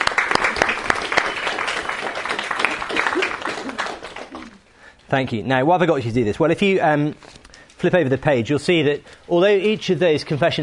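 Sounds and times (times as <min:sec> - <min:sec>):
crowd applauding: 0:00.0 - 0:04.6
speech: 0:05.1 - 0:10.6.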